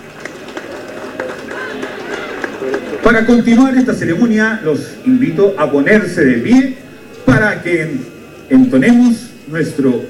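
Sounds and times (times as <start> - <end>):
audience applause: 0.0 - 3.2
speech: 3.0 - 6.8, 7.4 - 10.0.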